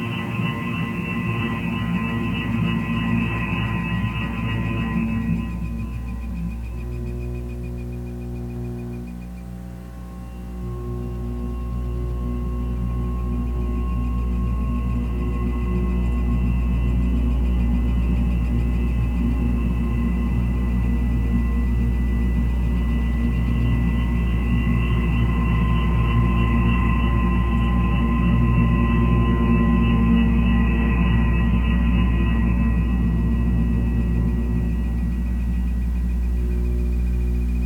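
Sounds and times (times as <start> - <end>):
drone whirling at the waterline: 0.0 - 37.6.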